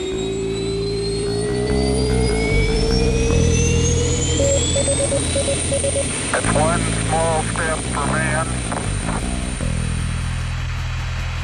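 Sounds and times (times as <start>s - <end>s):
short beeps: 0.0s - 9.1s
rocket engines roaring at launch: 0.0s - 11.4s.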